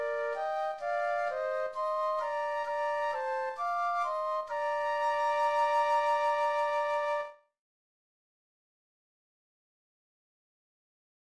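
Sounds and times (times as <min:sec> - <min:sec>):
flute duet: 0:00.0 - 0:07.5.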